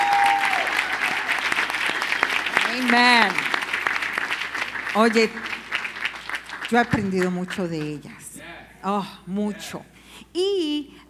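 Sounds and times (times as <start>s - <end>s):
audience applause: 0.0s - 7.9s
speech: 2.8s - 3.4s, 5.0s - 5.6s, 6.7s - 8.2s, 8.8s - 11.0s.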